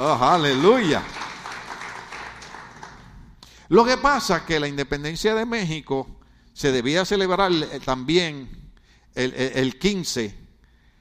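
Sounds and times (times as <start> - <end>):
speech: 0.0 - 1.2, 3.7 - 10.4
applause: 0.0 - 3.3.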